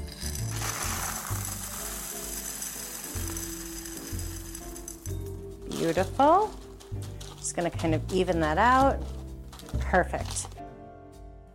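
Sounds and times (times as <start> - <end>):
sugar poured into pie crust as pie weights: 0.0 - 7.4
speech: 5.8 - 6.6, 7.5 - 9.1, 9.9 - 10.5.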